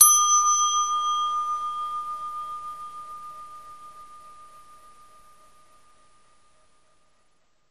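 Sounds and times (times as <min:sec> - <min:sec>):
elevator bell: 0:00.0 - 0:05.0.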